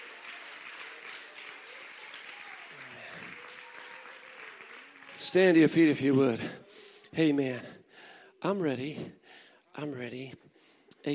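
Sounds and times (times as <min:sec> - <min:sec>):
audience clapping: 0:00.0 - 0:06.5
speech: 0:05.2 - 0:06.6, 0:07.2 - 0:07.8, 0:08.4 - 0:09.2, 0:09.8 - 0:11.1.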